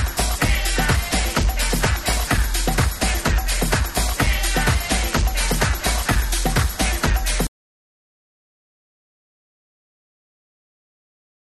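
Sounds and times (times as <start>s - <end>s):
tribal music mix: 0.0s - 7.5s.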